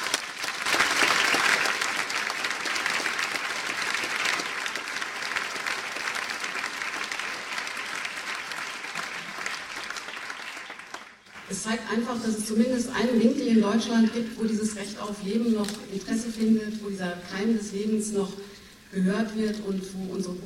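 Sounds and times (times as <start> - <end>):
audience clapping at a Memmingen gathering of Aktion Lebensrecht für alle: 0.0 - 12.0
speech: 11.6 - 20.4.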